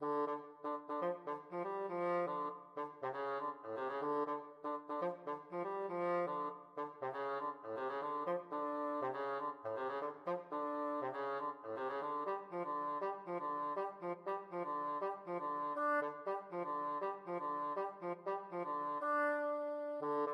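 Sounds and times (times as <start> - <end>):
bassoon playing a funk study: 0.0 - 20.3.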